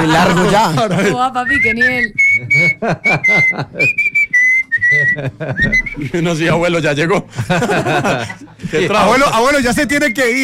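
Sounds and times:
laughter: 0.0s - 1.3s, 2.4s - 4.2s, 4.8s - 6.5s, 7.2s - 9.3s
speech: 0.0s - 4.2s, 4.8s - 10.4s
person whistling a slow bolero melody: 1.4s - 6.1s.

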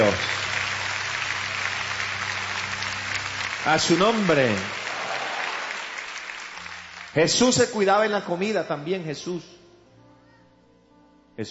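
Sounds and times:
congregational applause during a church service: 0.0s - 8.5s
speech: 0.1s - 0.3s, 3.6s - 4.8s, 7.1s - 9.6s.

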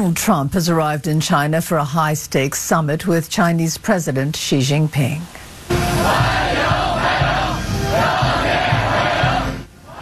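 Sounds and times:
speech: 0.0s - 7.3s
large crowd cheering and shouting: 5.9s - 10.0s.

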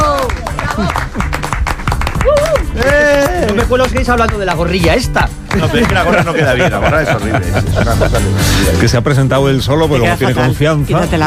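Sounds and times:
studio applause: 0.0s - 7.2s
laughter: 0.3s - 1.4s, 5.5s - 8.9s
speech: 3.6s - 11.2s.

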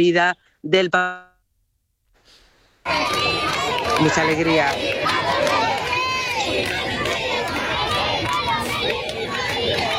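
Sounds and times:
speech: 0.0s - 1.3s, 2.8s - 3.4s, 4.0s - 5.6s
large crowd cheering and applauding: 2.9s - 9.9s.

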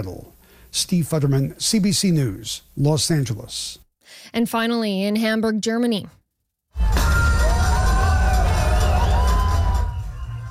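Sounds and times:
speech: 0.0s - 6.2s
crowd roar at street parade: 6.8s - 10.4s
shrill wavering whistle or siren-like tones: 6.8s - 10.4s.

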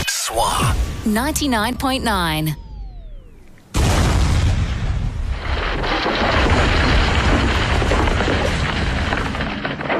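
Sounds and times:
speech: 1.0s - 2.6s
blasting-powder explosion destroying a windmill: 3.7s - 9.9s.

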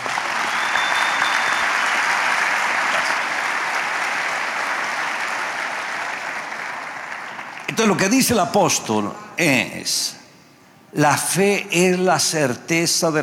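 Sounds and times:
audience applause: 0.0s - 8.0s
speech: 7.8s - 10.2s, 10.9s - 13.2s.

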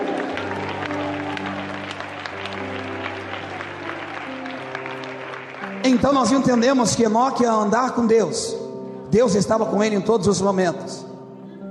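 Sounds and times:
church audience applauding: 0.0s - 7.6s
sustained low keyboard chords: 0.0s - 11.6s
speech: 5.8s - 11.0s.

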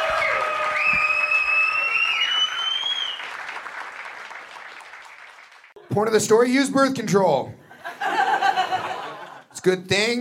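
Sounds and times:
comedy show audience applauding: 0.0s - 5.8s
shrill whistles from comedy show audience: 0.1s - 3.4s
speech: 5.9s - 7.6s, 9.6s - 10.2s
laughter: 7.6s - 9.5s.

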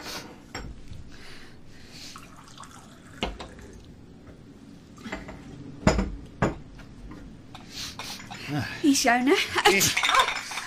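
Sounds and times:
coffee pouring into cups: 2.1s - 3.9s
speech: 8.5s - 10.4s.

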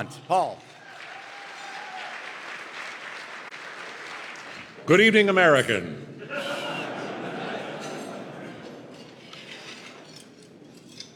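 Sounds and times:
speech: 0.0s - 0.8s, 4.9s - 6.4s
audience applause greeting a 1998 Radio Hall of Fame inductee: 0.8s - 4.8s
laughter: 6.2s - 9.2s.

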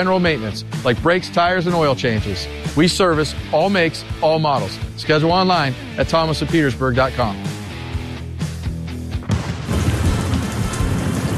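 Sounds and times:
speech: 0.0s - 7.6s
thunderstorm with rain: 9.6s - 11.3s.

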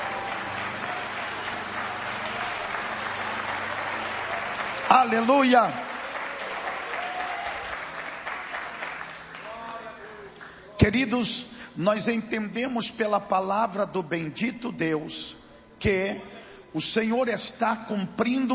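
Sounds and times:
audience applauding: 0.0s - 10.6s
speech: 4.9s - 5.8s, 10.9s - 18.5s.

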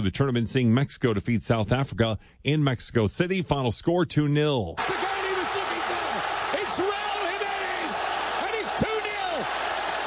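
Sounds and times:
speech: 0.0s - 5.3s
stadium crowd in Mexico City cheering a goal: 4.8s - 10.0s.

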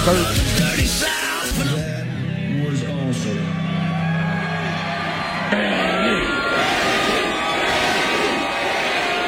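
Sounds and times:
concert crowd cheering as a 99-year-old woman crowd surfs: 1.0s - 9.2s
people shouting: 4.0s - 9.2s.

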